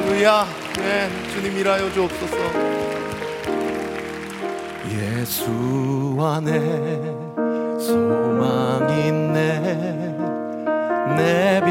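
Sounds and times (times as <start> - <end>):
audience applause: 0.0 - 5.8
keyboard or organ chords: 0.0 - 11.6
speech: 0.2 - 3.0, 4.9 - 10.1, 11.2 - 11.6.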